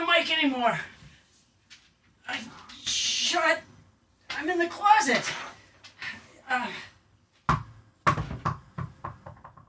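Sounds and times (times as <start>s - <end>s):
speech: 0.2s - 0.9s, 3.3s - 3.7s, 4.4s - 5.5s, 6.5s - 6.9s
dog's ball bouncing on hard floor: 7.5s - 9.6s.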